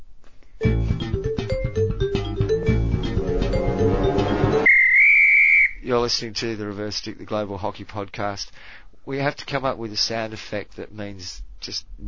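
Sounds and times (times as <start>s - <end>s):
podcast sting jingle: 0.6s - 4.7s
speech: 5.9s - 12.0s.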